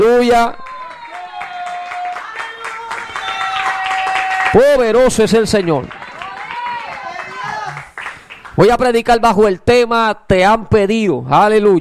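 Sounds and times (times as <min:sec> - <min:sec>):
speech: 0:00.2 - 0:00.6, 0:04.5 - 0:06.0, 0:08.6 - 0:11.8
audience applause: 0:00.5 - 0:08.8.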